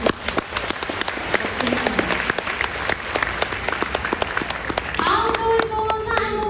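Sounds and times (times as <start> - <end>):
audience applause: 0.0 - 6.4
speech: 1.6 - 1.9.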